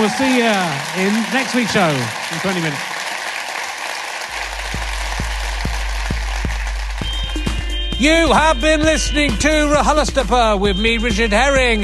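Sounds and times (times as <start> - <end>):
speech: 0.0 - 2.9, 8.0 - 11.8
audience applause: 0.0 - 7.5
low regular thumping beat: 4.4 - 11.8.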